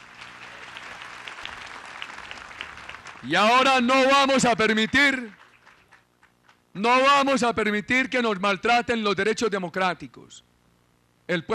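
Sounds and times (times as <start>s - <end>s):
crowd clapping: 0.0s - 6.6s
speech: 3.2s - 5.4s, 6.8s - 10.5s, 11.3s - 11.5s.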